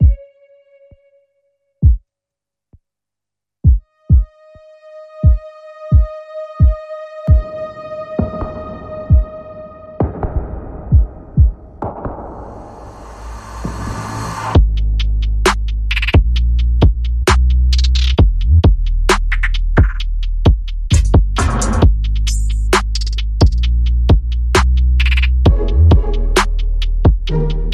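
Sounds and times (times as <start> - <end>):
pitched phat beat rhythm: 0.0 - 0.2, 1.8 - 2.0, 3.6 - 4.4, 5.2 - 7.6, 8.2 - 9.4, 10.0 - 12.4, 14.6 - 27.7.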